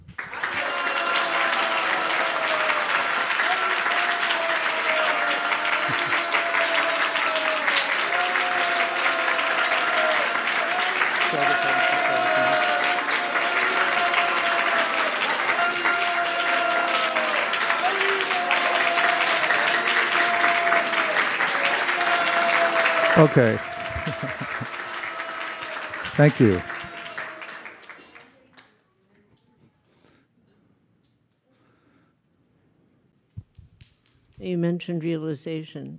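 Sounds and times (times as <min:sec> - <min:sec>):
audience applause: 0:00.0 - 0:28.7
faint voices and cheers: 0:00.2 - 0:28.7
laughter: 0:00.4 - 0:27.4
speech: 0:23.2 - 0:23.7, 0:26.2 - 0:26.7, 0:34.9 - 0:35.9.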